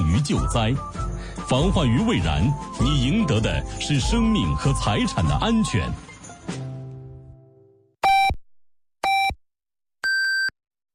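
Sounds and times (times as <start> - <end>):
speech: 0.2 - 6.6
radio hourly time signal electronic beeps: 8.0 - 8.4, 9.0 - 9.4, 10.0 - 10.5.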